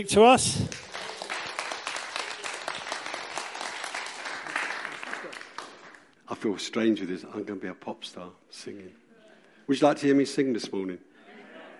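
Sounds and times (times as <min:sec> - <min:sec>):
speech: 0:00.0 - 0:00.9, 0:06.4 - 0:09.0, 0:09.7 - 0:11.1
audience applause: 0:00.7 - 0:06.1.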